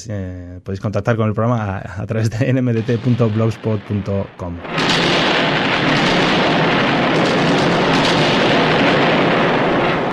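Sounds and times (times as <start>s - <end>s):
speech: 0.0s - 5.2s
thunder and lightning: 2.8s - 10.1s.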